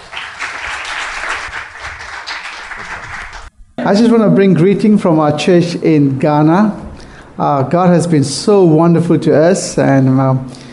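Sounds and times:
church congregation applause: 0:00.0 - 0:03.5
speech: 0:03.9 - 0:06.8, 0:07.4 - 0:10.6.

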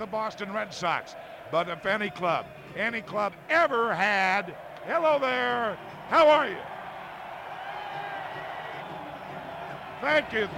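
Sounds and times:
speech: 0:00.0 - 0:06.7, 0:10.0 - 0:10.5
crowd clapping and cheering: 0:00.0 - 0:10.5.

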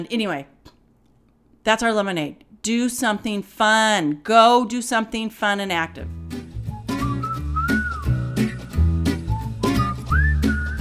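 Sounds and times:
speech: 0:00.0 - 0:00.6, 0:01.6 - 0:06.3
upbeat instrumental backing with percussion and bass: 0:06.0 - 0:10.7
bright whistled melody: 0:06.6 - 0:10.7.

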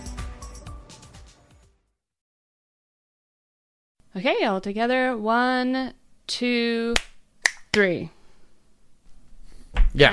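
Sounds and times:
speech: 0:04.1 - 0:07.1, 0:07.7 - 0:08.2
finger snap during a group count-in: 0:07.0 - 0:07.8.

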